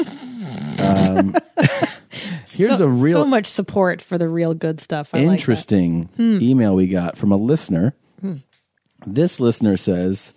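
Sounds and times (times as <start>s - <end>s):
fart sound effect: 0.0s - 1.2s
speech: 0.0s - 1.9s, 2.6s - 10.3s.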